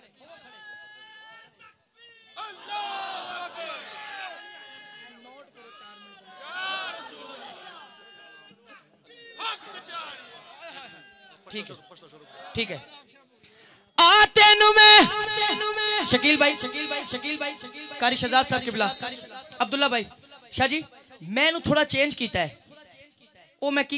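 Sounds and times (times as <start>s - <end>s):
crowd standing and chanting a slogan at a gathering: 2.4s - 5.2s, 6.2s - 8.1s, 9.2s - 11.0s, 14.0s - 21.1s
speech: 11.5s - 13.2s, 14.7s - 22.6s, 23.6s - 23.9s.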